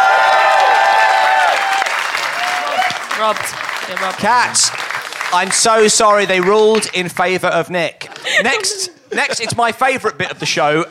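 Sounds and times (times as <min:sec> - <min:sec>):
audience applause: 0:00.0 - 0:07.0
speech: 0:03.2 - 0:10.8
laughter: 0:08.0 - 0:10.8.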